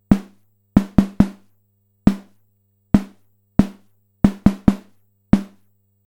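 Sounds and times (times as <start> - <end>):
snare drum: 0.0 - 1.5, 2.1 - 2.4, 3.0 - 5.7.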